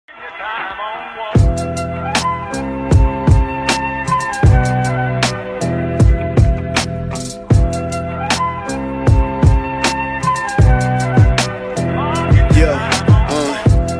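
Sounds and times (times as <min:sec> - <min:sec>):
freestyle remix ringtone music: 0:01.2 - 0:13.9.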